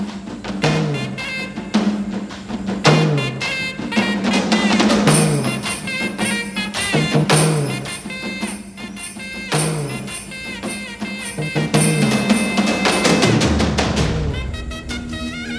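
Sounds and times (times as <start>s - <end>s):
phone call background music: 0.1s - 15.5s.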